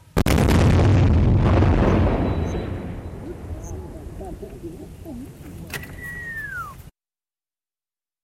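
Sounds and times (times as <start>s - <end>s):
controlled detonation of old unexploded bombs: 0.1s - 6.4s
faint voices: 3.1s - 6.7s
descending whistle: 5.8s - 6.9s.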